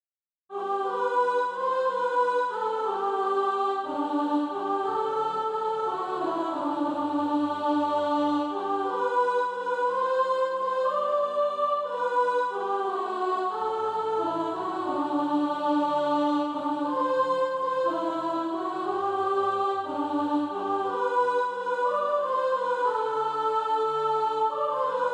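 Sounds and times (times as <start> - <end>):
soprano singing practice music: 0.5 - 25.1.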